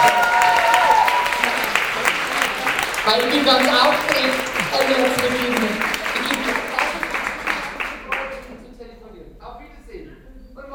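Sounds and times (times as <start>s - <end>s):
applause for a performer: 0.0s - 8.6s
speech: 3.1s - 5.5s.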